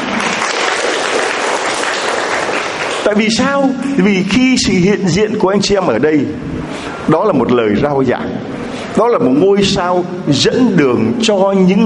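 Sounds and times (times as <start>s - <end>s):
audience applauding loudly: 0.0s - 4.5s
speech: 3.1s - 11.8s.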